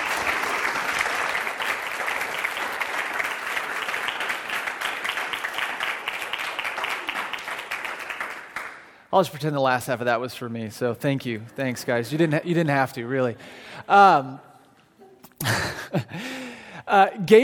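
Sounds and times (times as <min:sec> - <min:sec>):
audience applause: 0:00.0 - 0:09.0
speech: 0:09.2 - 0:14.5, 0:16.9 - 0:17.4.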